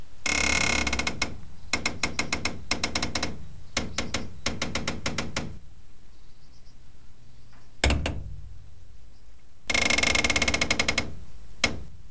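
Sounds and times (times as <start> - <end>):
aluminium window: 0.3 - 5.6, 7.8 - 8.8, 9.7 - 12.0.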